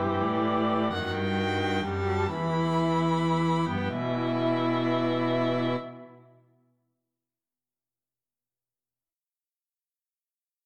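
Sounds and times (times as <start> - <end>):
string quartet playing: 0.0 - 6.1.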